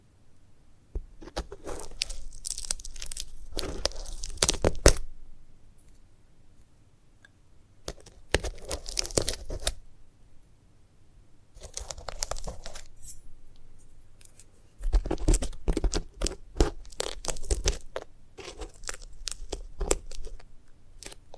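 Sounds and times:
sunflower head crunching, tearing and crinkling: 1.2s - 5.0s, 7.9s - 9.8s, 11.6s - 13.2s, 14.9s - 20.4s.

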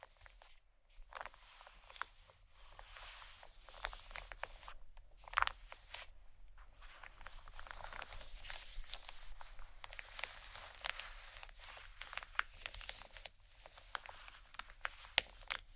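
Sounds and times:
soft crinkling, scratching and tapping on plastic: 3.6s - 15.7s.

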